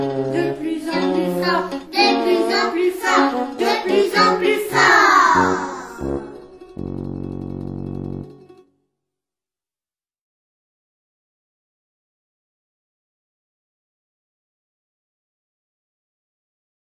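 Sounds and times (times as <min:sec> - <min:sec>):
person chanting: 0:00.4 - 0:06.2.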